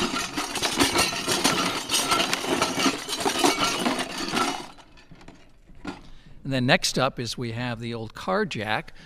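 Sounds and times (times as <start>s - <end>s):
small loose bits rattling in a shaken plastic container: 0.0s - 5.4s
speech: 6.5s - 9.0s.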